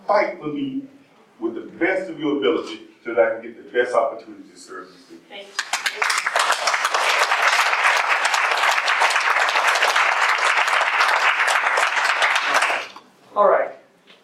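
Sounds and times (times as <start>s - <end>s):
speech: 0.1s - 6.7s, 13.4s - 13.8s
audience applause: 5.6s - 13.0s.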